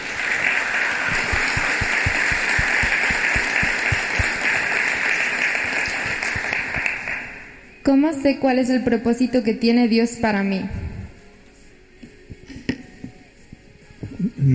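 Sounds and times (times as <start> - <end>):
audience applause: 0.0 - 7.6
speech: 7.9 - 10.8.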